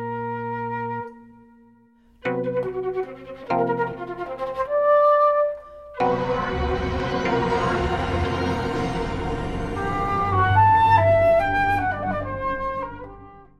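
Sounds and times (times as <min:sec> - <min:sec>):
flute: 0:00.0 - 0:13.5
electronic sounds: 0:06.0 - 0:11.9.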